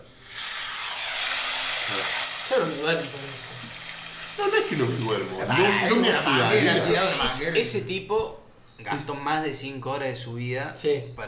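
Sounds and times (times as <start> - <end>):
recorded rain sound played from YouTube: 0.2 - 5.5
speech: 1.9 - 3.8, 4.4 - 11.2.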